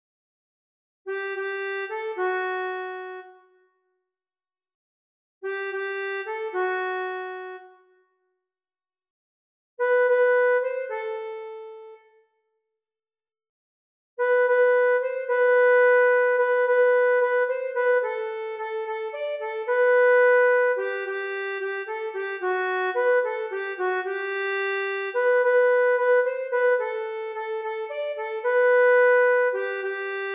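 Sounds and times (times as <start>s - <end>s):
accordion: 1.1s - 3.6s, 5.4s - 8.0s, 9.8s - 12.2s, 14.2s - 30.3s.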